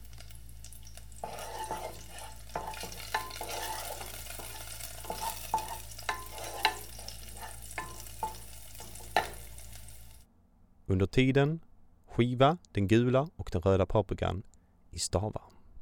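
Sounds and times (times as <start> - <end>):
red onion and garlic frying in oil: 0.0 - 10.3
utensil scraping a pan: 1.2 - 10.1
speech: 10.9 - 15.4.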